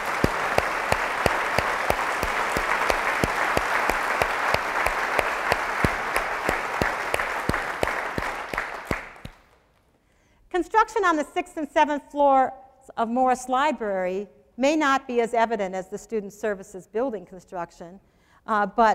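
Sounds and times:
audience applause: 0.0s - 9.5s
speech: 10.9s - 18.9s.

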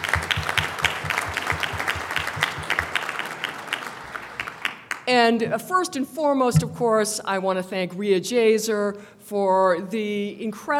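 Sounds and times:
audience applause: 0.0s - 5.0s
speech: 5.1s - 10.7s.

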